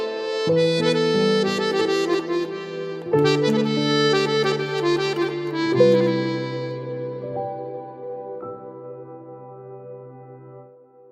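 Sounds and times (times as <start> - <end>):
accordion: 0.0 - 8.3
piano: 0.0 - 11.1.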